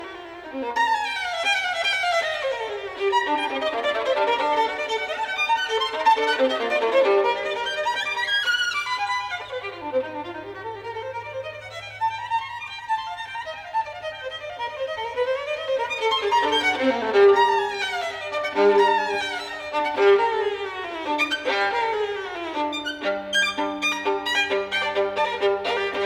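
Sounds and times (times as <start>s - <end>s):
classical caprice in G minor: 0.0s - 26.0s.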